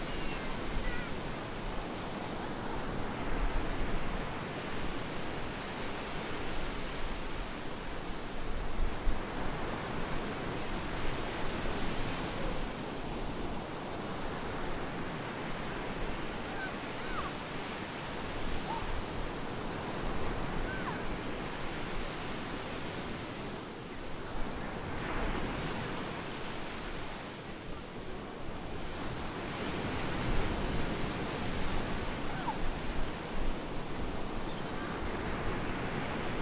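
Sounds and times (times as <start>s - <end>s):
beach ambience in Cyprus: 0.0s - 36.4s.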